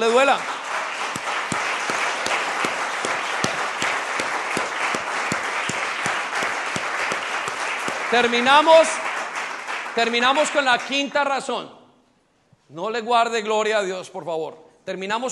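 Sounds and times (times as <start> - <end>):
speech: 0.0 - 0.6, 8.1 - 9.1, 10.0 - 11.8, 12.7 - 15.3
audience applause: 0.0 - 10.8.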